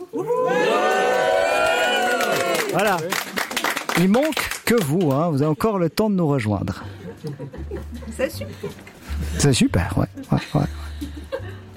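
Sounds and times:
live radio studio audience cheering and whooping: 0.0 - 3.0
speech: 2.8 - 3.1, 4.0 - 10.8
laughter: 6.7 - 11.7.

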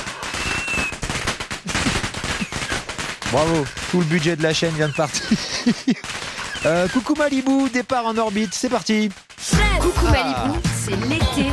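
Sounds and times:
fireworks sound effect crackling pops and bangs: 0.0 - 11.5
faint high whistle: 0.3 - 1.0
laughter: 1.7 - 2.6, 4.9 - 6.8, 9.6 - 10.6
speech: 3.3 - 11.5.

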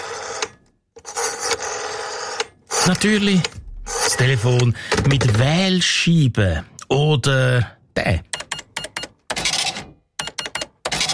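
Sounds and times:
speech: 2.9 - 8.3
old mechanical cash register ringing: 8.6 - 11.1.

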